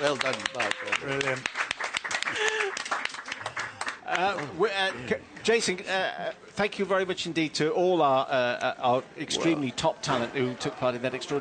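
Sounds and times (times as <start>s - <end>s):
speech: 0.0s - 1.6s, 4.2s - 11.3s
crowd round of applause: 0.0s - 4.7s.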